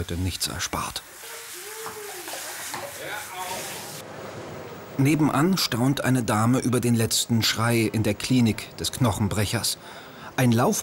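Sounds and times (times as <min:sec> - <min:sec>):
speech: 0:00.0 - 0:01.2, 0:05.0 - 0:10.8
cold shower water spraying: 0:00.0 - 0:04.0.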